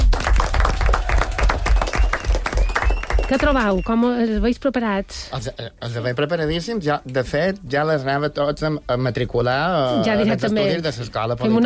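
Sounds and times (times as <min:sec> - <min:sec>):
applause: 0:00.0 - 0:04.1
speech: 0:03.3 - 0:11.6.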